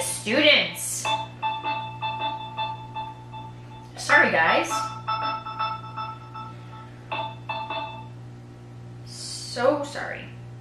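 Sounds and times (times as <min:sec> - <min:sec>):
speech: 0:00.2 - 0:00.8
mobile phone vibrating: 0:01.1 - 0:04.0, 0:04.7 - 0:08.2.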